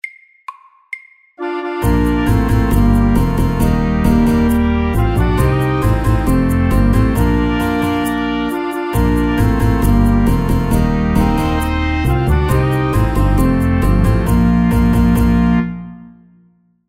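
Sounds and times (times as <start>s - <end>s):
fast mariachi band: 1.4s - 15.8s.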